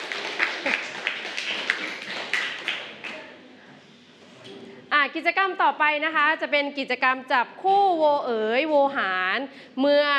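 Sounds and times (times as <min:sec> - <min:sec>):
group clapping: 0:00.0 - 0:03.4
speech: 0:05.1 - 0:10.1.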